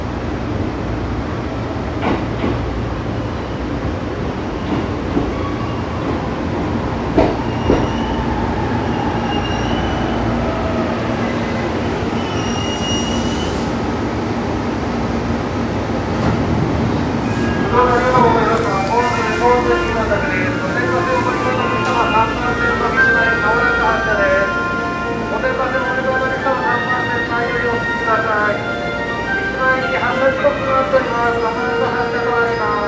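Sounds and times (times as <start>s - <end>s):
train sounds on the JR Tokaido and Gotemba lines south of Kozu: 0.0s - 32.8s.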